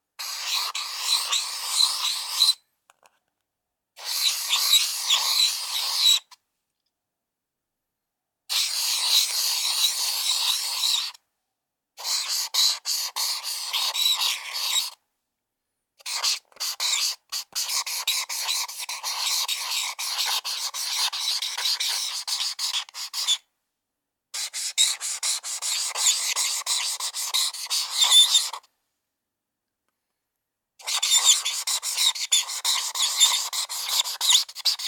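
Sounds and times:
marker on paper: 0.2 - 2.6, 4.0 - 6.2, 8.5 - 11.2, 12.0 - 15.0, 16.0 - 23.4, 24.4 - 28.7, 30.8 - 34.8.

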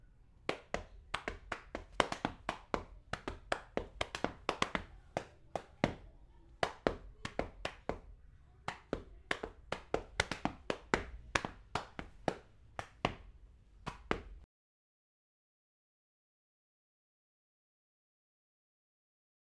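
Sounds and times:
gumboot dancing: 0.5 - 13.3.

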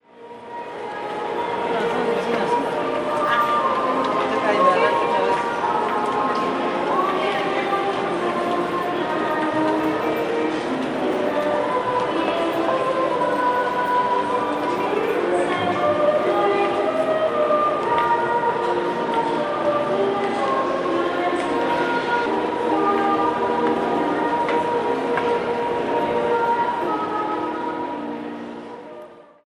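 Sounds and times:
Quicentro Shopping mall ambience at Christmas: 0.0 - 29.4.

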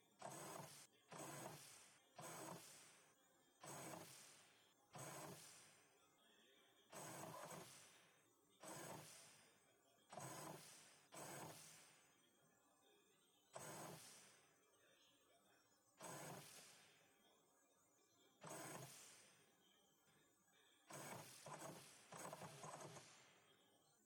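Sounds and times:
printers printing: 0.2 - 1.6, 2.2 - 2.7, 3.6 - 4.2, 5.0 - 5.4, 6.9 - 7.7, 8.6 - 9.1, 10.1 - 10.6, 11.2 - 11.6, 13.6 - 14.0, 16.0 - 16.5, 18.4 - 18.9, 20.9 - 23.1.

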